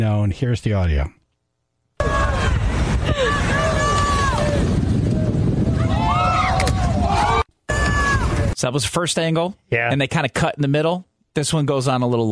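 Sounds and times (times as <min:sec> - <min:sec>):
speech: 0:00.0 - 0:01.2, 0:08.6 - 0:12.3
crowd shouting a collective ooh: 0:02.0 - 0:08.6.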